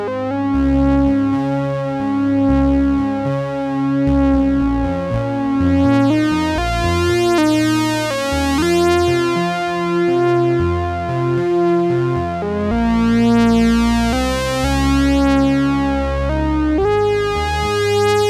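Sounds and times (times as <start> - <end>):
analog synthesizer sawtooth solo: 0.0 - 18.2.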